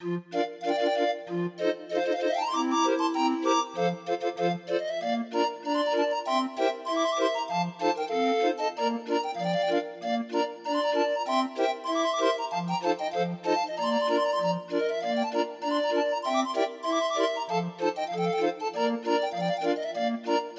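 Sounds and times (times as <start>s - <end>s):
barrel organ playing a Swiss polka: 0.0s - 20.5s.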